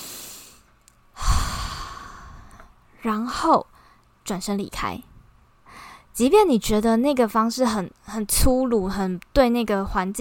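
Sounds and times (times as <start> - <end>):
deep breath: 0.0 - 2.8, 5.6 - 6.1
speech: 3.0 - 3.7, 4.3 - 5.1, 6.2 - 10.1.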